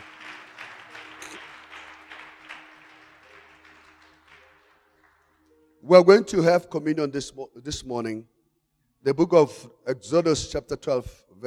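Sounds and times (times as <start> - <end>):
audience clapping: 0.0 - 5.8
speech: 5.8 - 8.4, 9.0 - 11.4.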